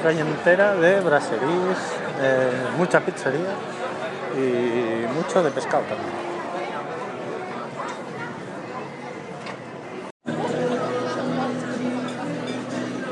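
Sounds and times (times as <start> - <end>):
speech: 0.0 - 3.8, 4.4 - 6.3
murmur of many overlapping voices in a busy restaurant: 0.0 - 13.0.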